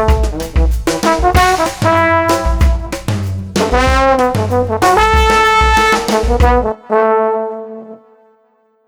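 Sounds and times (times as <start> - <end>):
street drums groove: 0.0 - 6.8
trombone groove: 0.0 - 8.4.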